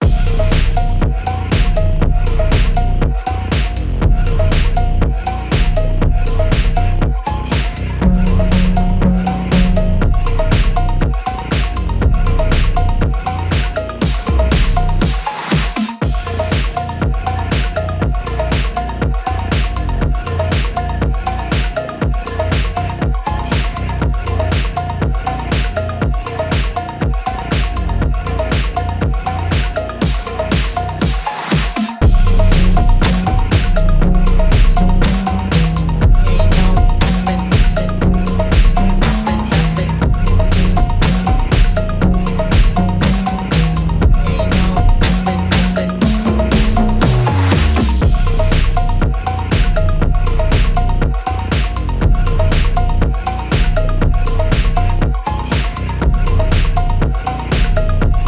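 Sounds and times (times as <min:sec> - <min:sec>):
phonk music: 0:00.0 - 0:58.2.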